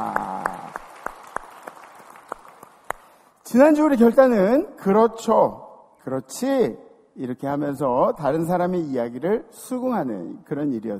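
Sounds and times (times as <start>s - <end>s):
audience applause: 0.0s - 3.2s
speech: 3.5s - 10.9s.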